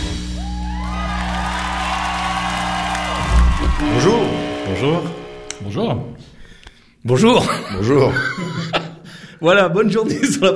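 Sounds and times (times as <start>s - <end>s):
crowd cheering played from control room: 0.0s - 6.2s
crowd clapping played from control room: 0.4s - 5.6s
speech: 3.8s - 6.3s, 7.0s - 8.8s, 9.4s - 10.5s
laughter: 7.3s - 9.1s.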